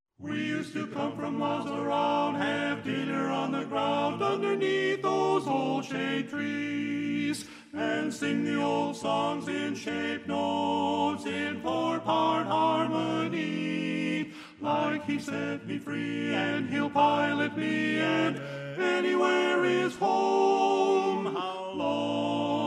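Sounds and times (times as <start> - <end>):
tenor singing: 0.3 - 22.6.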